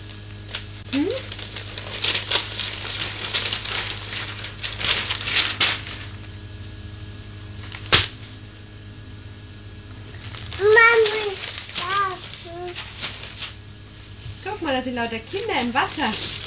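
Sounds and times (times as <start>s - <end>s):
child rustling a newspaper: 0.0s - 6.4s, 10.0s - 16.4s
speech: 0.9s - 1.4s, 14.8s - 16.4s.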